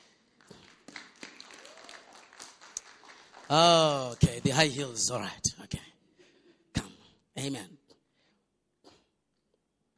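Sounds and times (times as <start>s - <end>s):
audience clapping hands: 0.0s - 5.1s
speech: 3.5s - 5.5s, 7.4s - 7.8s.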